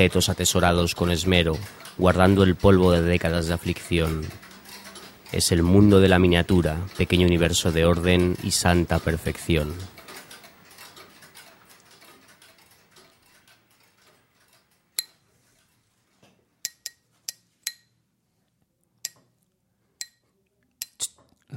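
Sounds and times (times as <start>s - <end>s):
speech: 0.0s - 4.4s, 5.3s - 10.0s
small gem hammer tapping while carving: 16.6s - 17.9s, 19.0s - 19.3s, 20.0s - 21.0s.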